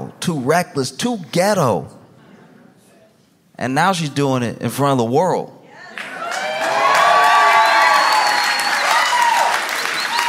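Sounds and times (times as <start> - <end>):
speech: 0.2 - 2.0, 3.6 - 5.6
crowd cheering and applauding: 5.9 - 10.2.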